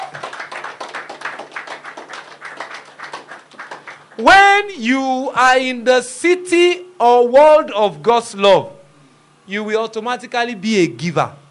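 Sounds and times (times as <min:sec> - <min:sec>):
audience clapping for the children: 0:00.0 - 0:04.3
speech: 0:04.2 - 0:08.8, 0:09.5 - 0:11.4.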